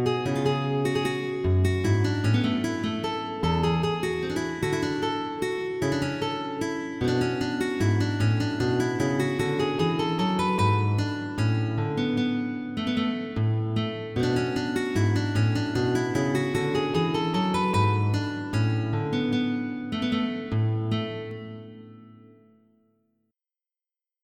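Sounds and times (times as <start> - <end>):
MIDI guitar minuet: 0.0 - 22.7.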